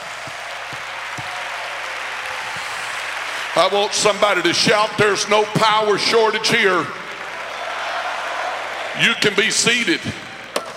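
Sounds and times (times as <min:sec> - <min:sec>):
crowd clapping: 0:00.0 - 0:10.7
speech: 0:03.6 - 0:07.0, 0:09.0 - 0:10.2.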